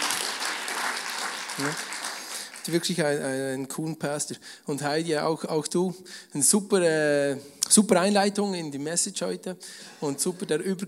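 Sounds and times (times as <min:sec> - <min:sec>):
audience applause: 0:00.0 - 0:02.9
speech: 0:01.6 - 0:01.9, 0:02.6 - 0:10.8.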